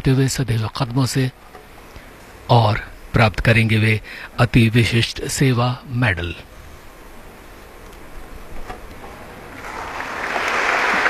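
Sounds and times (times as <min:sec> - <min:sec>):
speech: 0:00.0 - 0:01.6, 0:02.5 - 0:06.5
applause: 0:09.6 - 0:11.0.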